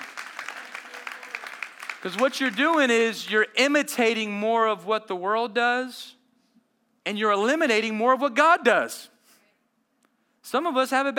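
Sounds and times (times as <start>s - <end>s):
audience clapping: 0.0s - 3.8s
speech: 2.0s - 6.2s, 7.1s - 9.1s, 10.5s - 11.1s.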